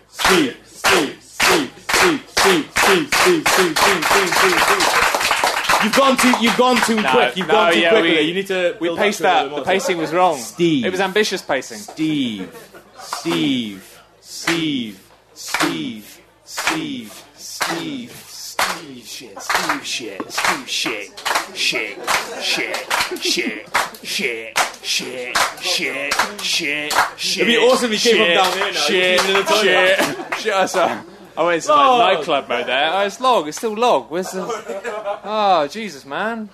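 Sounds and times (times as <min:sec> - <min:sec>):
speech: 0:00.2 - 0:01.0, 0:02.5 - 0:05.2, 0:05.8 - 0:18.2, 0:18.9 - 0:36.5
hand clapping: 0:00.2 - 0:07.7, 0:13.1 - 0:13.6, 0:14.4 - 0:14.7, 0:15.4 - 0:15.9, 0:16.5 - 0:17.9, 0:18.5 - 0:30.5
laughter: 0:05.8 - 0:08.3, 0:09.4 - 0:11.1, 0:11.8 - 0:13.8, 0:18.7 - 0:32.0, 0:34.1 - 0:35.4.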